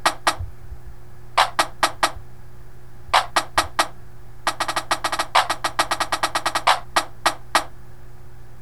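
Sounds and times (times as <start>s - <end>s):
snare drum: 0.0s - 0.4s, 1.4s - 2.2s, 3.2s - 7.7s.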